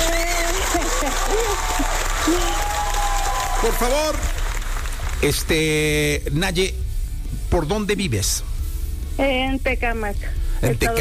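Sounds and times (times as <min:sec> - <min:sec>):
faint voices and cheers: 0:00.0 - 0:04.4
studio audience applause: 0:00.0 - 0:06.0
speech: 0:02.3 - 0:02.6, 0:03.6 - 0:04.3, 0:05.2 - 0:06.8, 0:07.5 - 0:08.5, 0:09.2 - 0:10.9.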